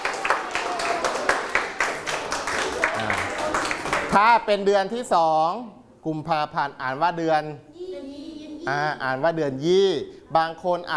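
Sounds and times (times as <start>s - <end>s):
applause: 0.0s - 4.2s
speech: 4.2s - 7.7s, 8.7s - 10.9s.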